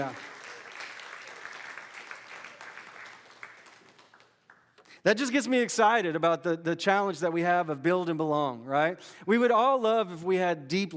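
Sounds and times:
speech: 0.0 - 0.3, 5.0 - 10.9
audience applause: 0.0 - 4.4.

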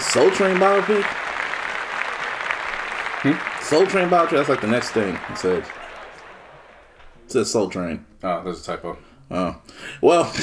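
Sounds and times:
round of applause: 0.0 - 7.2
speech: 0.1 - 1.2, 3.2 - 5.8, 7.3 - 10.4.

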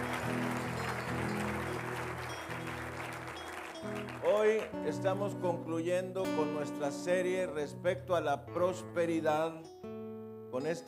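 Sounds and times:
audience applause: 0.0 - 4.8
speech: 4.4 - 9.7, 10.5 - 10.8.

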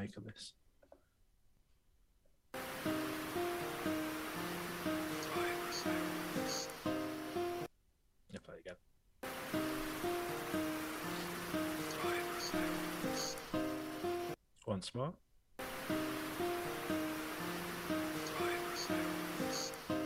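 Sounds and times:
speech: 0.0 - 0.6, 8.3 - 8.9, 14.6 - 15.2
water rushing in a tunnel: 2.6 - 6.9, 9.2 - 13.9, 15.6 - 20.0.

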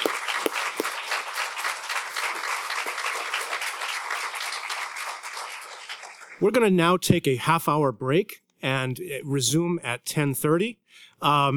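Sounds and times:
audience applause: 0.0 - 6.5
speech: 6.4 - 11.5.

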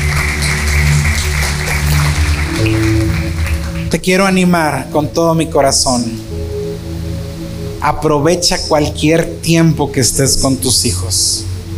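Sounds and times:
audience applause: 0.0 - 4.4
sustained keyboard or organ chords: 0.0 - 11.7
speech: 3.9 - 6.3, 7.8 - 11.5.

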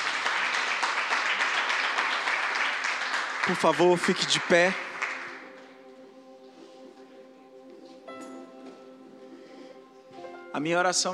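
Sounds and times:
audience applause: 0.0 - 5.7
speech: 3.5 - 4.9, 10.6 - 11.1.

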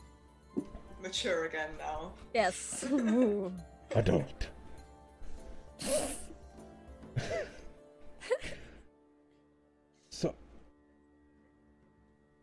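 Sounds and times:
speech: 1.0 - 4.6, 5.8 - 6.2, 10.2 - 10.4
person coughing: 7.2 - 7.6.

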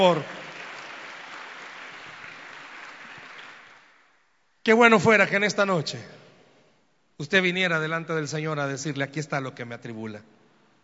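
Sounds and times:
speech: 0.0 - 0.4, 4.7 - 6.2, 7.2 - 10.4
audience applause: 0.0 - 4.1.

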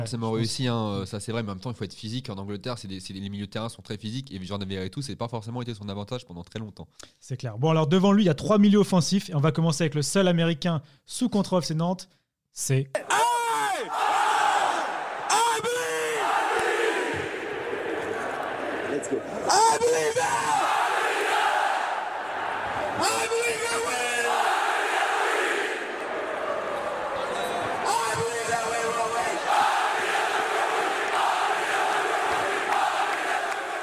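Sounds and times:
speech: 0.0 - 13.2
football crowd chanting a player's name: 13.0 - 33.8.

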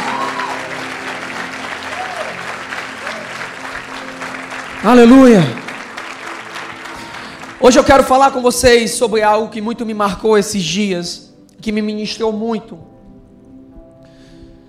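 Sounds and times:
audience applause: 0.0 - 8.1
speech: 4.8 - 5.6, 7.6 - 12.9.

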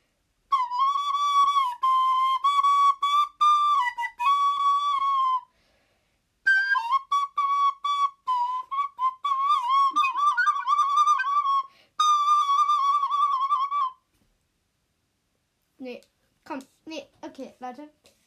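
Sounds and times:
flute playing snake charmer music: 0.5 - 5.5, 6.4 - 14.0
speech: 17.4 - 18.1.

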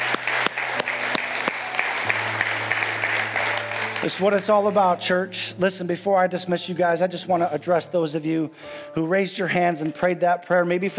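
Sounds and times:
church congregation applause: 0.0 - 5.1
speech: 4.0 - 10.9.

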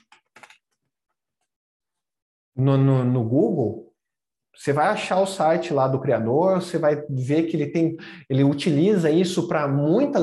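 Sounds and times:
soft typing on a computer keyboard: 0.0 - 0.8
speech: 2.6 - 3.9, 4.6 - 10.2.

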